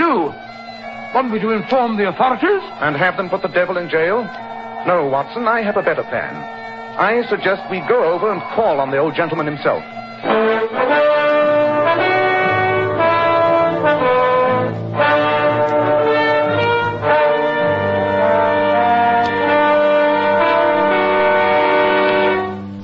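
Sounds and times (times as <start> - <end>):
bagpipes playing: 0.0 - 22.8
speech: 1.1 - 11.0.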